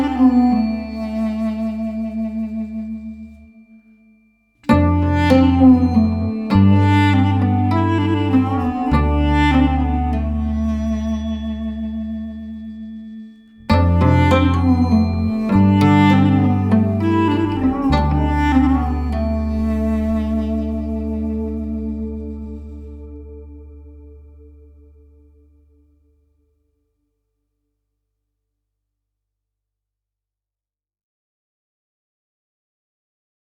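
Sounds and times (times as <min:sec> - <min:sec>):
oud playing: 0:00.0 - 0:03.6, 0:04.6 - 0:24.4.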